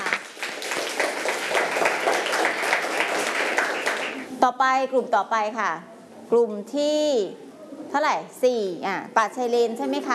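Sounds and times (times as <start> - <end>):
audience applause: 0.0 - 4.3
speech: 4.4 - 10.1.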